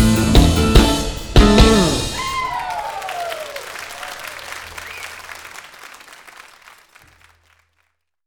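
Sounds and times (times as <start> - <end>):
backing track without lead guitar: 0.0 - 5.2.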